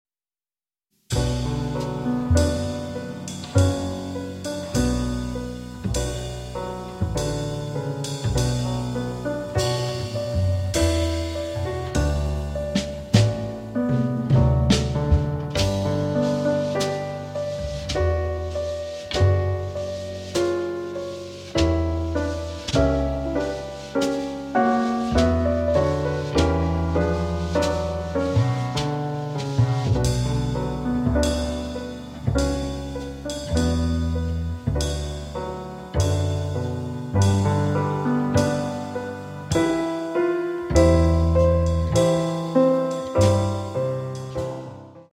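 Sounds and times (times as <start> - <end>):
jazz ensemble playing in B minor: 1.1 - 44.8.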